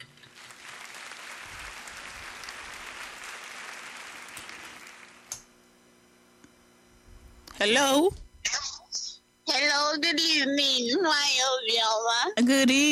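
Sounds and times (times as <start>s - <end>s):
group applauding: 0.3s - 5.4s
speech: 7.6s - 8.6s, 9.6s - 12.9s.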